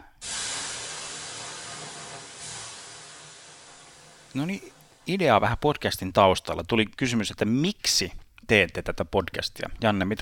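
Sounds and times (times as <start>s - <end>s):
water thrown on hot sauna stones hissing into steam: 0.0s - 5.5s
speech: 4.4s - 10.2s.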